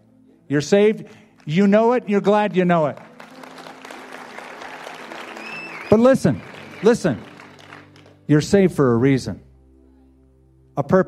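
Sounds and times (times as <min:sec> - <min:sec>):
speech: 0:00.5 - 0:03.1, 0:05.9 - 0:07.3, 0:08.3 - 0:09.5, 0:10.8 - 0:11.0
audience applause: 0:02.3 - 0:08.2.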